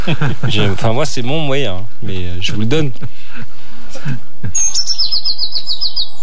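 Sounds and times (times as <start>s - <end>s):
laughter: 0.0s - 1.0s, 2.6s - 4.8s
speech: 0.0s - 6.0s
blue tit singing in a field: 4.5s - 6.2s.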